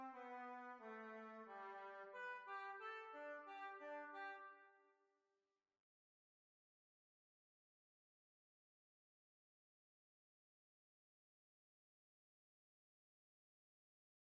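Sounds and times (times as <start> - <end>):
hornpipe tune: 0.0 - 4.6.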